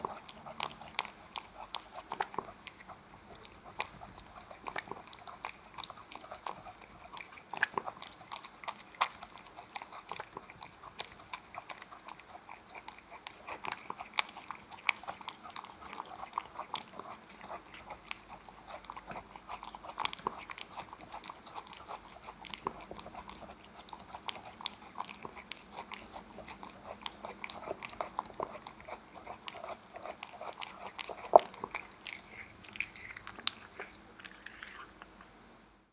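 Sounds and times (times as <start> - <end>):
cat eating wet food: 0.0 - 35.9.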